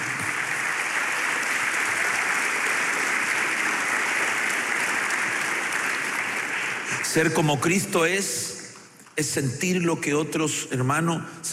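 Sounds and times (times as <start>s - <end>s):
crowd audience applause: 0.0s - 7.6s
speech: 7.1s - 8.5s, 9.2s - 11.5s.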